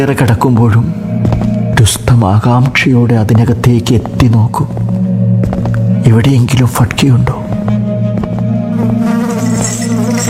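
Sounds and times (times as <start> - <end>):
speech: 0.0 - 5.5, 6.1 - 7.8
flies buzzing around sores on chained legs in a jail: 7.6 - 10.2.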